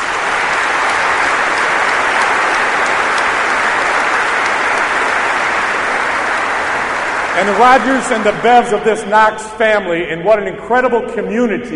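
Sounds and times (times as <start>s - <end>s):
audience applause: 0.0s - 9.1s
speech: 7.4s - 11.7s.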